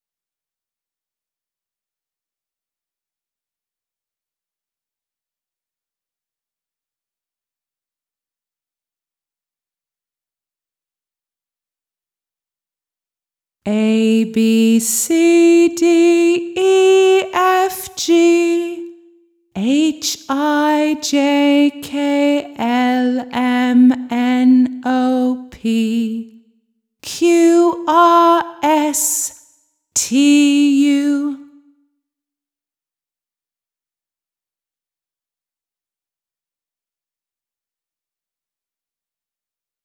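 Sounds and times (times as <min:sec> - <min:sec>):
British person singing: 0:13.7 - 0:18.9, 0:19.6 - 0:26.3, 0:27.1 - 0:29.3, 0:30.0 - 0:31.5.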